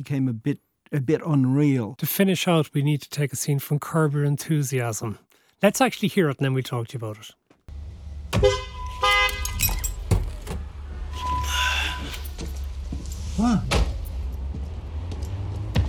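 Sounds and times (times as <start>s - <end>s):
speech: 0.0s - 7.4s, 8.3s - 8.6s, 13.4s - 13.8s
low engine rumble: 7.7s - 15.8s
clunks: 8.2s - 15.8s
car horn honk: 8.3s - 9.9s, 10.8s - 12.3s.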